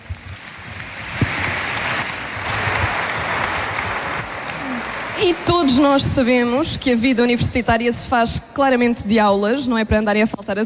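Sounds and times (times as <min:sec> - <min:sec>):
audience applause: 0:00.0 - 0:05.9
speech: 0:05.2 - 0:10.6.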